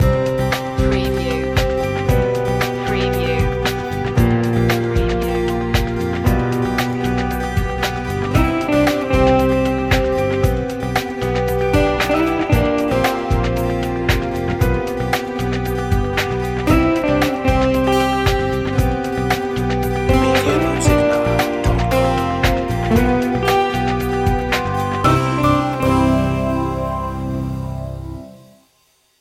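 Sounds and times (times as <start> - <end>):
corporate achievement music: 0.0 - 28.6.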